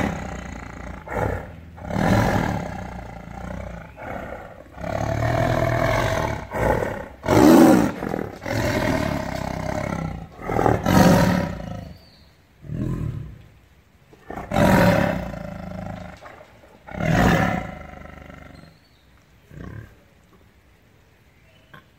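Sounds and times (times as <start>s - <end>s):
tiger roaring: 0.0s - 12.0s, 14.2s - 18.7s.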